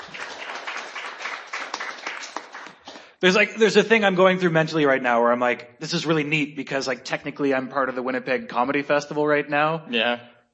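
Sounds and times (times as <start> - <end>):
audience applause: 0.0 - 3.2
speech: 3.2 - 10.4.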